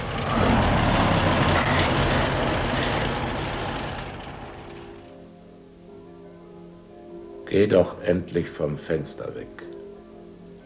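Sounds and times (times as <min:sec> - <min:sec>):
bus engine pulling away: 0:00.0 - 0:05.1
speech: 0:07.5 - 0:09.8.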